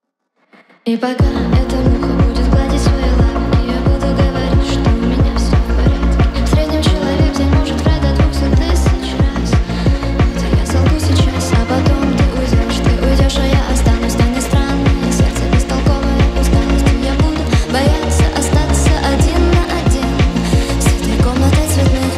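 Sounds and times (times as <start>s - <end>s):
hardstyle remix: 1.2s - 22.1s.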